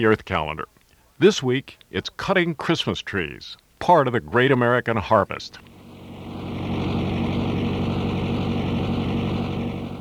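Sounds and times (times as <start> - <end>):
speech: 0.0 - 5.7
tractor engine roaring on the Coftry Christmas tree farm: 5.6 - 9.9.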